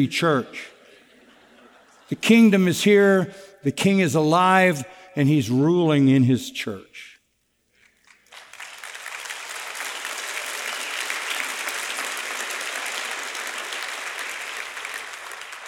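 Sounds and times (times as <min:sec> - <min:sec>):
speech: 0:00.0 - 0:00.7, 0:02.1 - 0:07.1
laughter: 0:00.6 - 0:02.2
audience applause: 0:08.0 - 0:15.6.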